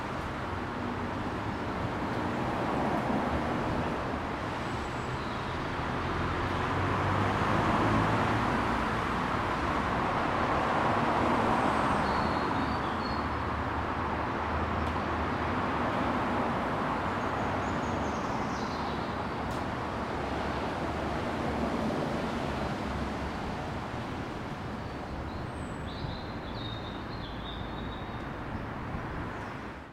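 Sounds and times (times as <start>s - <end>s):
suburban side street ambience: 0.0s - 29.9s
car passing by on a suburban side street: 1.4s - 24.8s.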